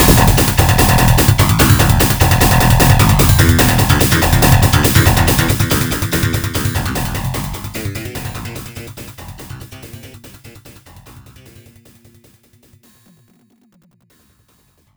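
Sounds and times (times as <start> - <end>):
bass-heavy battle scene music: 0.0 - 11.7.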